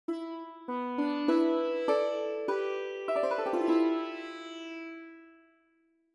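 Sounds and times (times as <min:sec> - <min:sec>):
sitar: 0:00.1 - 0:05.9.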